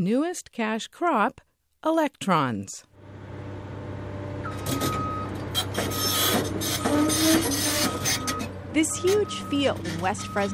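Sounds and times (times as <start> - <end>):
speech: 0.0 - 2.9, 4.6 - 5.0, 8.8 - 10.5
steady low engine drone: 3.0 - 10.5
faint whining tones: 4.2 - 10.5
pile driver boring steel poles into the ground: 4.4 - 10.5
scraping metallic bursts: 4.6 - 10.5.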